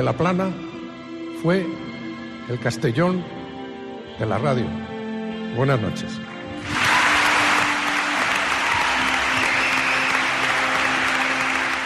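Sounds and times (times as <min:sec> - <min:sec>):
speech: 0:00.0 - 0:00.7, 0:01.4 - 0:01.9, 0:02.5 - 0:03.4, 0:04.2 - 0:04.9, 0:05.5 - 0:06.8
audience applause in Castellón: 0:06.6 - 0:11.8.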